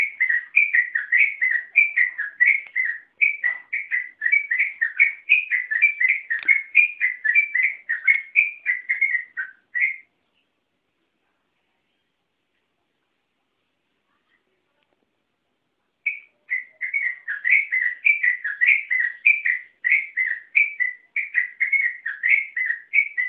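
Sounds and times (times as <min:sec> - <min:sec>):
Oriental magpie-robin singing whistled notes: 0:00.0 - 0:10.1, 0:16.0 - 0:23.2.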